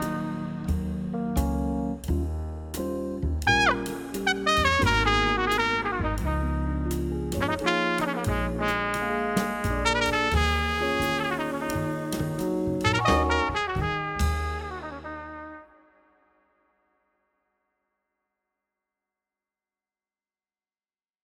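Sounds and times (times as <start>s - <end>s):
smooth jazz: 0.0s - 15.7s.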